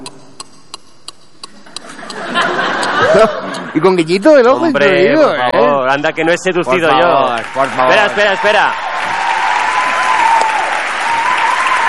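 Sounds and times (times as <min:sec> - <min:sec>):
laughter: 0:01.5 - 0:05.5
speech: 0:03.2 - 0:08.8
audience applauding: 0:06.7 - 0:11.8.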